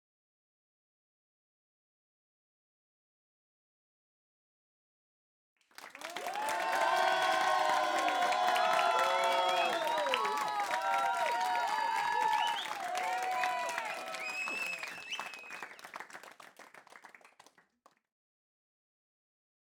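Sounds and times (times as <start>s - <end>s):
audience applauding: 5.7s - 17.7s
people shouting bravo: 6.2s - 14.4s
whistling: 8.2s - 16.0s.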